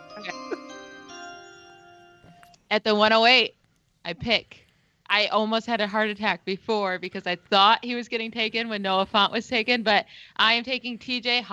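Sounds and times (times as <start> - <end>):
chime: 0.0 - 2.6
speech: 2.7 - 11.5.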